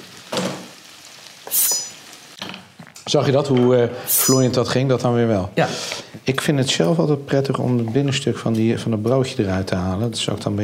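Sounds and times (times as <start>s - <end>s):
food sizzling in a pan on stove: 0.0s - 6.2s
bright metallic ring: 1.5s - 2.0s, 4.1s - 4.7s
speech: 3.1s - 10.6s.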